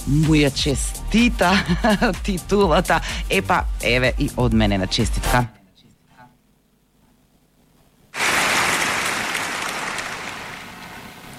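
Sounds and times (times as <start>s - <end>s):
speech: 0.1s - 5.6s
loud applause for Arsenal fans after a league title win: 8.2s - 10.9s.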